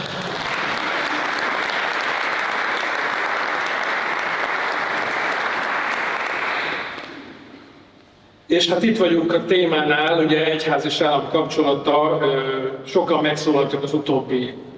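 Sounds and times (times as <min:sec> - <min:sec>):
audience applause: 0:00.0 - 0:07.4
speech: 0:08.5 - 0:14.7.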